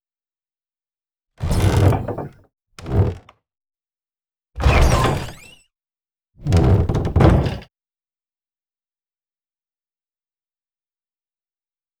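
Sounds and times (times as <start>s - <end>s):
door opening: 1.4s - 3.3s, 4.6s - 5.6s, 6.4s - 7.6s.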